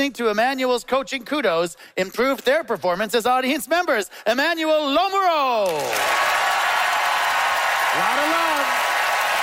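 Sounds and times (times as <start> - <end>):
speech: 0.0 - 6.4, 8.0 - 8.8
audience applause: 5.6 - 9.4.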